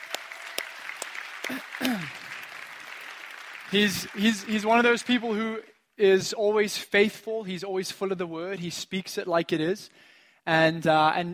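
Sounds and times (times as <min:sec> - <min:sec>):
audience applause: 0:00.0 - 0:05.6
vocal whoops: 0:01.4 - 0:02.3
speech: 0:01.5 - 0:02.2, 0:03.7 - 0:11.3.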